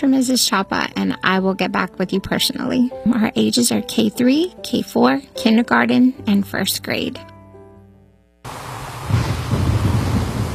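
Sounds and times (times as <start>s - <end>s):
speech: 0.0s - 7.3s
heavy rain: 8.5s - 10.5s
thunder rumbling: 8.5s - 10.5s.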